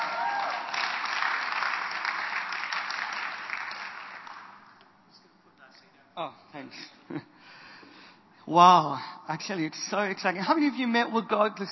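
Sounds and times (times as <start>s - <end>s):
audience clapping and cheering: 0.0s - 4.8s
speech: 6.2s - 7.6s, 8.5s - 11.7s.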